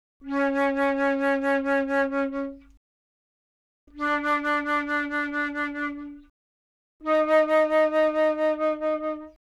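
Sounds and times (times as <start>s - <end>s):
flute: 0.2s - 2.8s, 3.9s - 6.3s, 7.0s - 9.4s.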